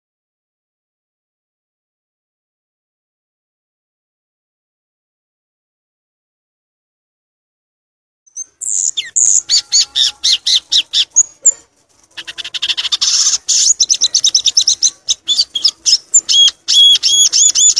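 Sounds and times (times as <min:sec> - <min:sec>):
violaceous euphonia song: 0:08.3 - 0:17.7.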